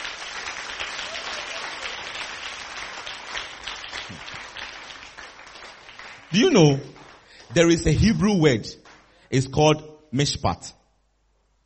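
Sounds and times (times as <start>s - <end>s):
crowd applause: 0.0s - 7.9s
speech: 6.3s - 6.9s, 7.5s - 10.8s.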